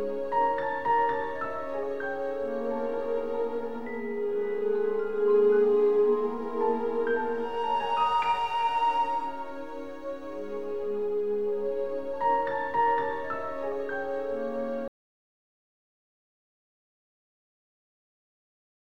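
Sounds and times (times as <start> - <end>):
classical music: 0.0 - 14.9.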